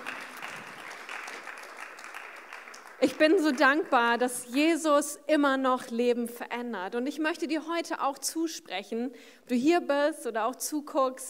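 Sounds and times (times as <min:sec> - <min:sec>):
audience applause: 0:00.0 - 0:04.2
speech: 0:03.0 - 0:11.2.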